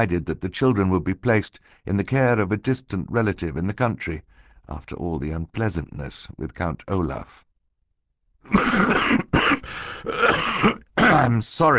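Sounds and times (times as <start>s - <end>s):
speech: 0.0s - 7.5s, 8.4s - 9.3s, 10.0s - 11.7s
voice acting harsh raspy coughs: 8.5s - 11.4s.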